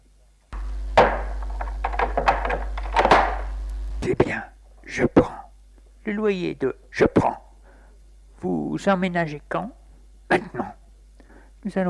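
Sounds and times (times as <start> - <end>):
door being closed: 0.6 - 3.6
speech: 4.1 - 5.3, 6.0 - 7.4, 8.4 - 10.8, 11.6 - 11.8.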